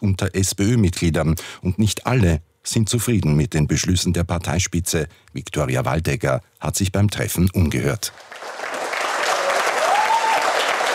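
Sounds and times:
speech: 0.0 - 8.7
applause welcoming a politician in the SPÖ-Lokal in Strebersdorf: 8.1 - 10.9.

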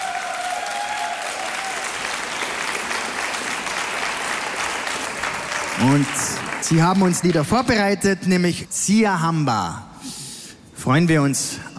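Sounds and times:
frenetic audience applause in a hall: 0.0 - 7.7
speech: 5.8 - 9.9, 10.8 - 11.7.

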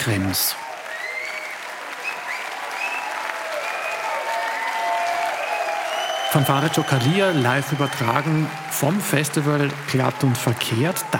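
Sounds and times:
speech: 0.0 - 0.6, 6.3 - 11.1
festival audience cheering in a winery courtyard in Krems after a band's final encore: 0.0 - 11.1
high whistles from a festival audience: 0.9 - 4.1, 5.4 - 8.5.

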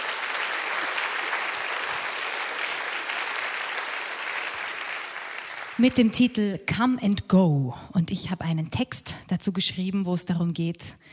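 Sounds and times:
audience applause: 0.0 - 6.0
speech: 5.8 - 11.1.

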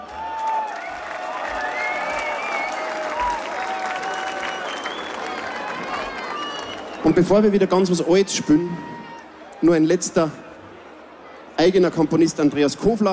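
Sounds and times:
audience applause: 0.0 - 7.6
speech: 7.0 - 8.9, 9.6 - 10.4, 11.6 - 13.1.

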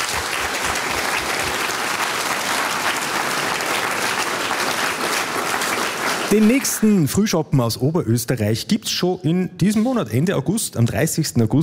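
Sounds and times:
audience applause: 0.0 - 7.3
speech: 6.3 - 11.6.

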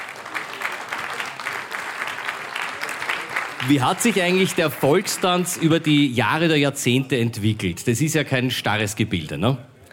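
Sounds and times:
applause: 0.0 - 5.9
speech: 3.6 - 9.7.

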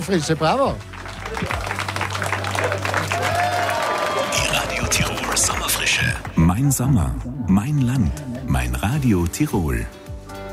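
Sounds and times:
speech: 0.0 - 1.5, 4.9 - 10.0
applause: 0.0 - 6.4.

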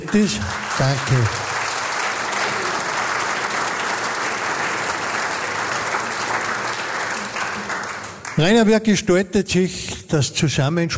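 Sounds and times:
audience applause: 0.0 - 8.7
speech: 0.1 - 1.5, 8.4 - 10.9.

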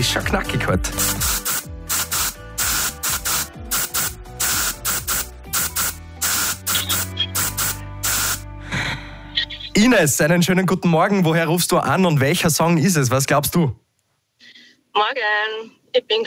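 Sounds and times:
speech: 0.0 - 1.4, 9.8 - 13.8, 15.0 - 16.2
musical backing with sustained low tones: 0.0 - 11.2
deodorant spray can hissing bursts: 0.9 - 8.5.

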